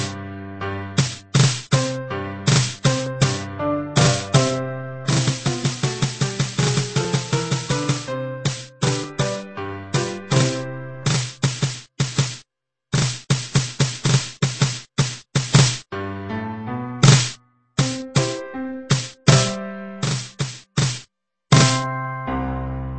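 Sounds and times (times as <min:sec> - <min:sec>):
piano: 0:00.0 - 0:11.8, 0:15.9 - 0:22.9
drum: 0:01.0 - 0:04.5, 0:05.1 - 0:09.4, 0:10.0 - 0:12.4, 0:13.0 - 0:15.9, 0:17.0 - 0:21.9.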